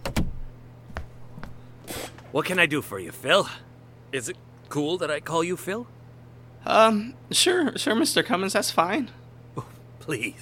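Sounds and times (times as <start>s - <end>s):
door latch clicks: 0.0s - 0.5s
door shutting: 0.0s - 0.6s
speech: 2.3s - 6.0s, 6.6s - 10.4s.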